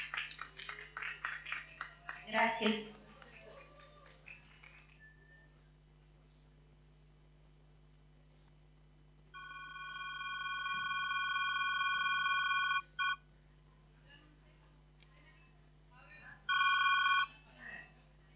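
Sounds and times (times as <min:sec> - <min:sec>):
speech: 0:02.3 - 0:03.0
lost black Samsung mobile phone ringing in a bathroom: 0:09.4 - 0:13.2, 0:16.5 - 0:17.4.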